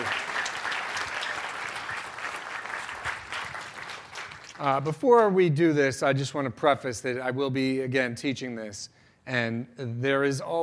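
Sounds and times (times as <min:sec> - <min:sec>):
audience applause after a talk with a magic demonstration: 0:00.0 - 0:04.8
speech: 0:04.6 - 0:10.6.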